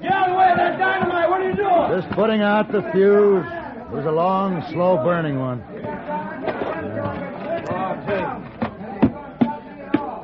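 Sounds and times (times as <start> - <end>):
crowd running off shouting: 0.0 - 10.2
speech: 1.9 - 5.8.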